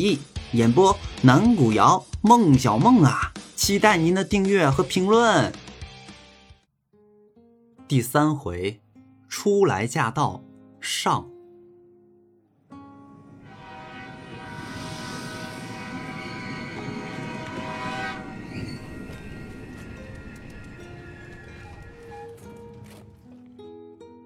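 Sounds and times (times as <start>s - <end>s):
speech: 0.0s - 5.6s, 7.9s - 11.3s
long deep train horn: 12.9s - 23.3s.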